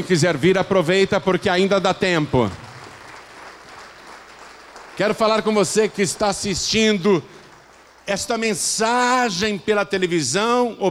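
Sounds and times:
speech: 0.0s - 2.6s, 5.0s - 7.4s, 8.1s - 10.9s
audience applause: 2.4s - 8.1s.

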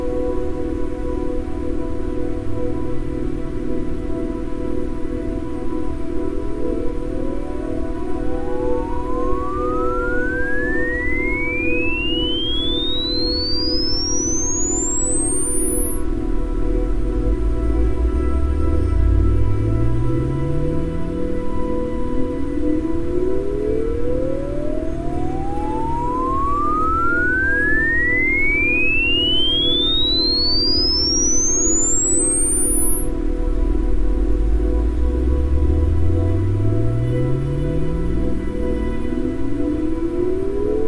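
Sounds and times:
low pulsing isochronic tone: 0.2s - 40.8s
pure tone gliding upward: 1.6s - 4.9s, 7.8s - 40.8s
white noise: 8.2s - 40.8s.

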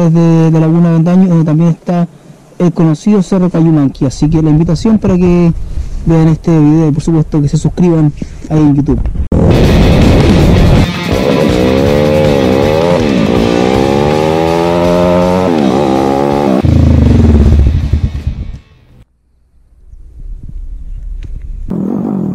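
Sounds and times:
speech: 0.0s - 9.6s
motorcycle engine revving: 9.4s - 19.7s.

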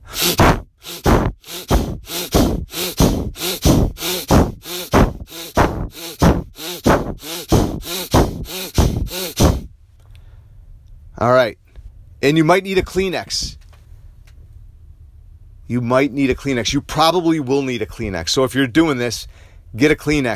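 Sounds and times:
rapid forceful breathing in and out through the nose: 0.0s - 10.4s
speech: 12.2s - 13.6s, 15.7s - 20.3s.

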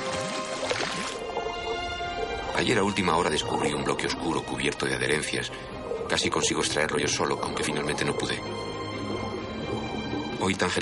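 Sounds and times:
bubbles rising to water surface: 0.0s - 10.8s
speech: 2.6s - 8.8s, 10.4s - 10.8s.

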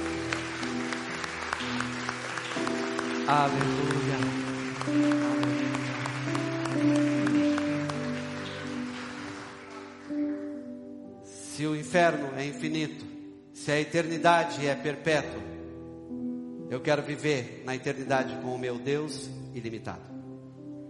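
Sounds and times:
audience applause: 0.0s - 10.4s
sustained keyboard chords: 0.0s - 20.8s
speech: 3.3s - 5.3s, 11.6s - 15.5s, 16.7s - 20.1s.

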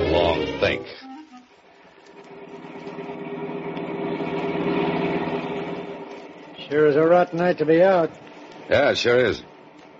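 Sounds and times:
taxi cab engine running: 2.3s - 7.0s
speech: 6.7s - 9.5s.

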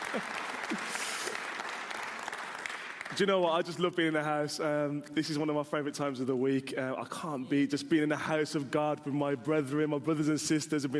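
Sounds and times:
crowd clapping: 0.0s - 3.6s
speech: 0.1s - 0.8s, 3.2s - 10.9s.

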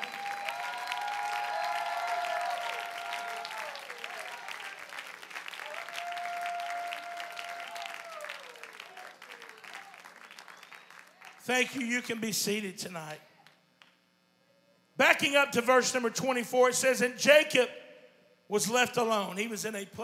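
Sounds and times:
audience clapping hands: 0.0s - 12.3s
speech: 11.5s - 13.3s, 15.2s - 17.8s, 18.5s - 20.0s.

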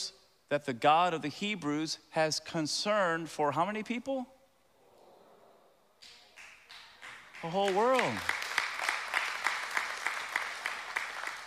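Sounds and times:
speech: 0.5s - 4.4s, 7.4s - 8.4s
audience clapping: 6.0s - 11.4s.

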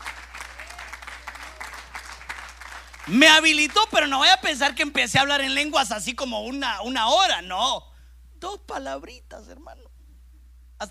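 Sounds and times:
audience applause: 0.0s - 4.2s
speech: 3.1s - 10.0s, 10.8s - 10.9s.

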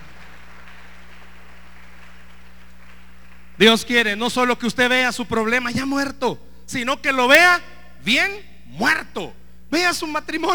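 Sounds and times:
audience applause: 0.0s - 3.6s
speech: 3.6s - 10.5s.

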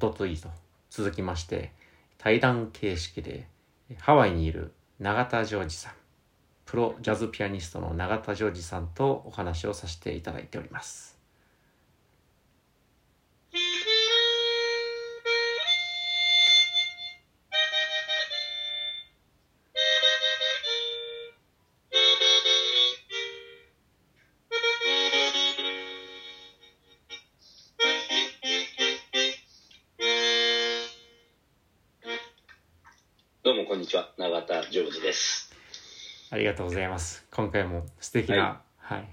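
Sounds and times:
speech: 0.0s - 6.0s, 6.7s - 11.1s, 36.3s - 39.1s
melodica playing: 13.5s - 23.8s, 24.5s - 31.4s, 32.0s - 32.6s, 33.5s - 36.4s.

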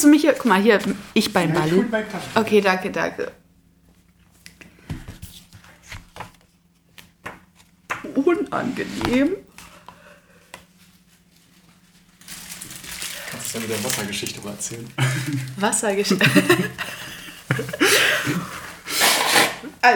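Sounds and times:
speech: 0.0s - 3.4s, 8.3s - 9.4s, 13.4s - 18.6s
laughter: 15.0s - 18.8s
nose blowing into a tissue: 18.8s - 19.6s.

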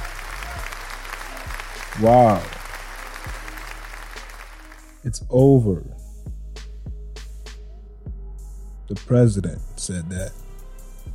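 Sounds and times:
crowd applause sound effect: 0.0s - 5.0s
speech: 2.0s - 2.5s, 5.0s - 6.0s, 8.9s - 10.4s.

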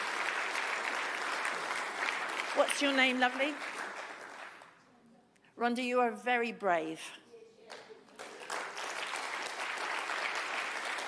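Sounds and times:
audience clapping: 0.0s - 4.9s, 7.7s - 11.0s
speech: 2.6s - 3.8s, 5.6s - 7.2s.

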